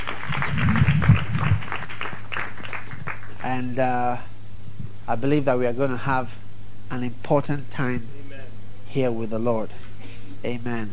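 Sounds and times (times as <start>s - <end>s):
audience clapping: 0.0s - 3.6s
speech: 3.5s - 4.3s, 5.1s - 8.2s, 8.9s - 9.8s, 10.4s - 10.9s.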